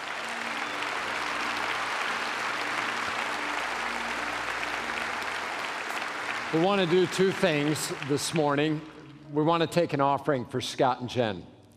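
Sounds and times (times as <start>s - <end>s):
audience applause: 0.0s - 9.0s
speech: 6.5s - 11.5s.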